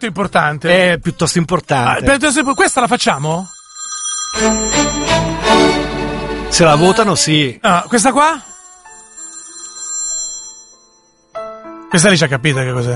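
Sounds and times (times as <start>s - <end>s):
speech: 0.0s - 3.6s, 4.3s - 5.3s, 6.5s - 8.5s, 11.9s - 12.9s
mobile phone ringing: 2.1s - 6.3s, 7.7s - 11.4s.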